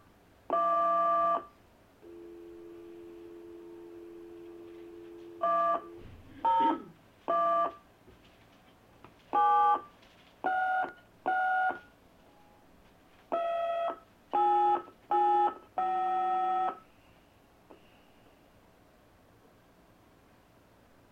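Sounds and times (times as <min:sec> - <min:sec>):
fax machine transmission tones: 0:00.5 - 0:07.8, 0:09.4 - 0:12.6, 0:13.3 - 0:16.8.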